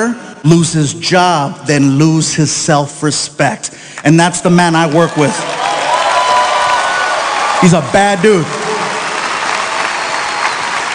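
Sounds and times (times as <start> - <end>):
speech: 0.0 - 5.7, 7.6 - 8.6
audience applause after a story on stage: 4.7 - 10.9.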